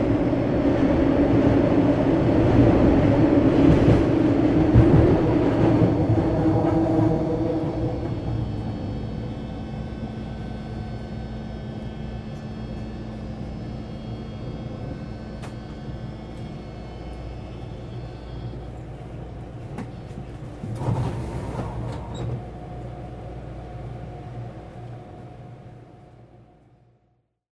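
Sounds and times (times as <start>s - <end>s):
subway train ride: 0.0s - 27.4s.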